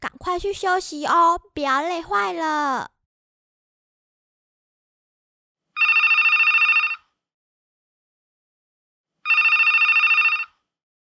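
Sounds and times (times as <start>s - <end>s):
speech: 0.2s - 3.0s
telephone ringing: 5.8s - 7.1s, 9.2s - 10.7s.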